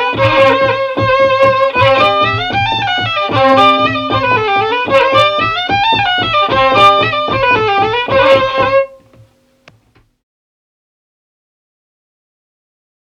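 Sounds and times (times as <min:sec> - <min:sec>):
baroque dance piece: 0:00.0 - 0:09.2.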